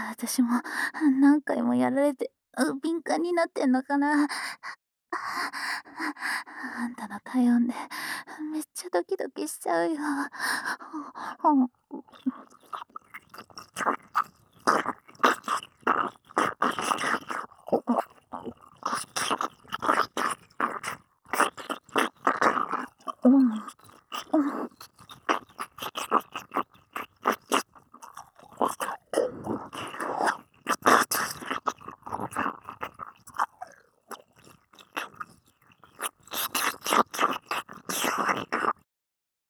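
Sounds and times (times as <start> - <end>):
speech: 0.2 - 20.0, 23.2 - 24.8
ear licking: 12.0 - 38.8.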